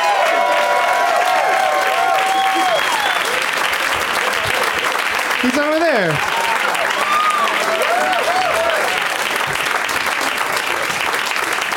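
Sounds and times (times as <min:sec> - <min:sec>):
audience applause welcoming guests: 0:00.0 - 0:11.7
cheering voices: 0:00.0 - 0:11.7
whistles: 0:02.3 - 0:03.4
speech: 0:05.4 - 0:06.4.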